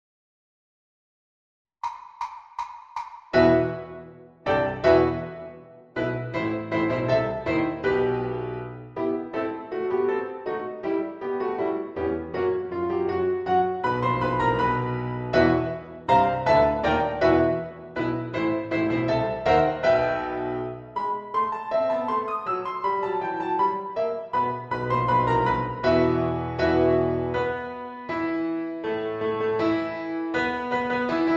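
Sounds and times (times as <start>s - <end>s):
solo piano: 3.4s - 31.3s.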